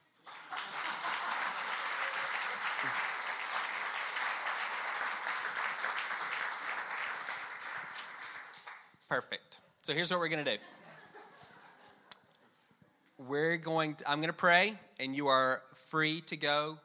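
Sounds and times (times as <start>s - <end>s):
audience clapping: 0.0s - 9.1s
speech: 9.1s - 10.8s, 13.3s - 16.8s
laughter: 10.5s - 12.1s.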